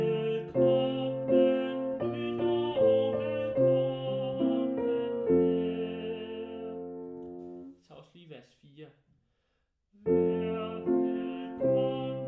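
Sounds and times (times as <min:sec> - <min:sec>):
upper voice singing: 0:00.0 - 0:07.4, 0:10.0 - 0:12.2.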